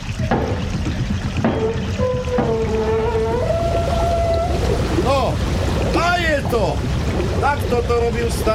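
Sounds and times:
sharp knocks: 0:00.0 - 0:03.6
water rushing through a raised sluice gate: 0:00.0 - 0:08.5
drawn-out metallic squeals: 0:01.5 - 0:05.0
speech: 0:06.5 - 0:08.5.

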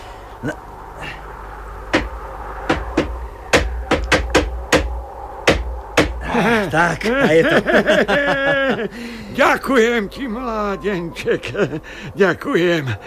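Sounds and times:
speech: 0:00.4 - 0:01.2, 0:06.4 - 0:13.0
hammering a nail: 0:01.9 - 0:02.1, 0:02.7 - 0:06.2
laughter: 0:06.2 - 0:13.0.

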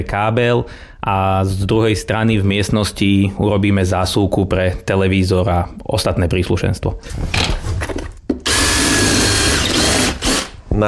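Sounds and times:
speech: 0:00.0 - 0:08.0
power drill drilling into a wall: 0:08.4 - 0:10.6.

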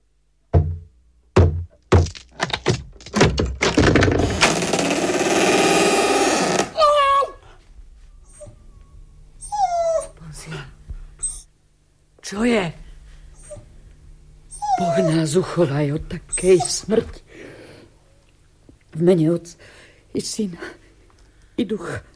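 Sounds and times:
axe striking a door: 0:00.5 - 0:04.6
door splintering as it gives way: 0:01.9 - 0:06.8
high whimpering cries: 0:04.8 - 0:11.5, 0:14.5 - 0:15.5
speech: 0:15.4 - 0:17.2, 0:19.0 - 0:20.8, 0:21.6 - 0:22.1.

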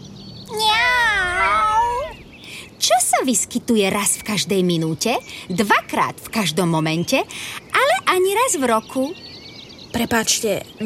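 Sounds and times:
cat meowing: 0:00.5 - 0:02.2
speech: 0:03.3 - 0:09.3, 0:09.9 - 0:10.8.

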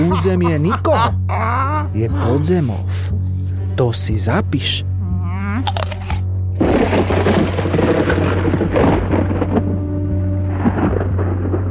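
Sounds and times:
speech: 0:00.2 - 0:03.2, 0:03.8 - 0:04.9, 0:05.6 - 0:05.9
rain: 0:06.6 - 0:11.6
thunder: 0:06.6 - 0:11.6.

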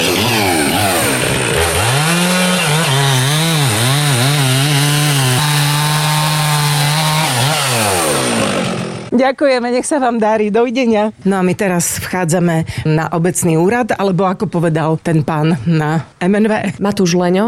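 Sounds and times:
chainsaw running: 0:00.0 - 0:09.1
speech: 0:09.2 - 0:17.4.

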